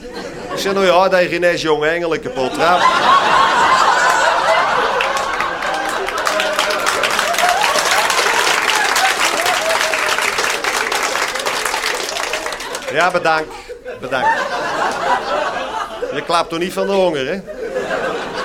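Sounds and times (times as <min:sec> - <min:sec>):
laughter: 0:00.0 - 0:01.0, 0:02.2 - 0:18.4
speech: 0:00.6 - 0:03.5, 0:12.9 - 0:17.6
audience applause: 0:02.7 - 0:13.4.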